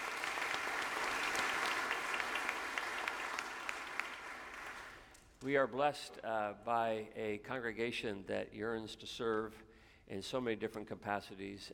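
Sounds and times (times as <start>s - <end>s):
audience applause: 0.0s - 5.0s
speech: 5.4s - 11.7s.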